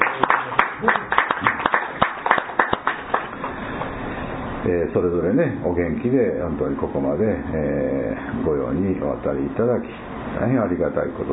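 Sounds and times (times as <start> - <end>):
applause: 0.0 - 3.9
speech: 4.7 - 11.3.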